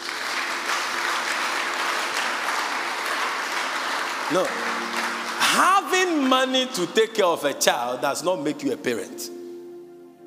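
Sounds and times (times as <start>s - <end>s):
audience applause: 0.0s - 7.2s
speech: 4.3s - 9.4s.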